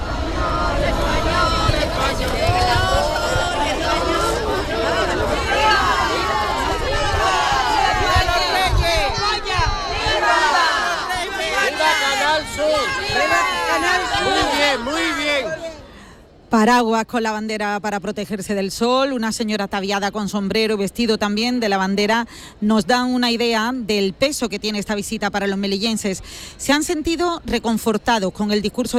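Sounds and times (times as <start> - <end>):
cheering crowd in Melilla with schoolchildren welcoming the King and Queen: 0.0 - 15.9
speech: 16.5 - 28.9.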